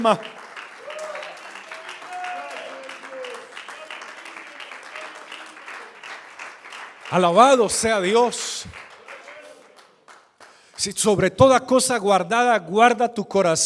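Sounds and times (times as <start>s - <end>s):
speech: 0.0s - 0.4s, 7.1s - 8.8s, 10.8s - 13.6s
audience applause: 0.0s - 10.7s.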